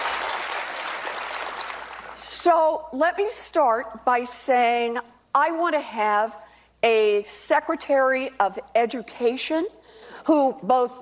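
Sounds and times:
crowd applause: 0:00.0 - 0:02.2
speech: 0:02.4 - 0:10.9.

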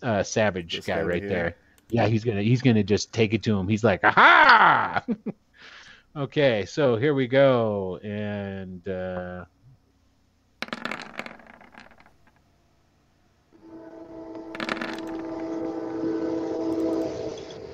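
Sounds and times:
speech: 0:00.0 - 0:09.6
passing train: 0:15.5 - 0:17.7.

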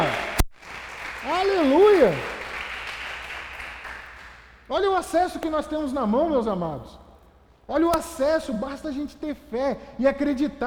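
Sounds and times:
audience applause: 0:00.0 - 0:04.5
speech: 0:01.3 - 0:02.3, 0:04.7 - 0:07.0, 0:07.7 - 0:10.6.

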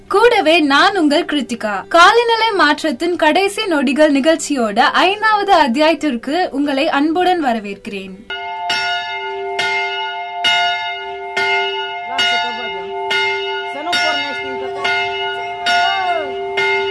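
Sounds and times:
speech: 0:00.1 - 0:08.4
bell rung as reminder to drink water: 0:08.3 - 0:16.8.

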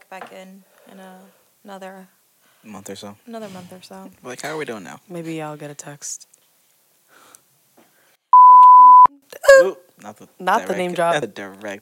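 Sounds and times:
speech: 0:00.1 - 0:06.3, 0:09.6 - 0:11.7
electronic censor bleep: 0:08.4 - 0:09.1.

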